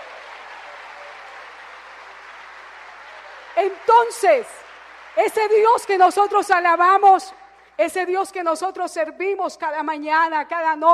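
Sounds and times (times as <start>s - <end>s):
audience applause: 0.0s - 6.4s
speech: 3.6s - 4.6s, 5.2s - 10.9s.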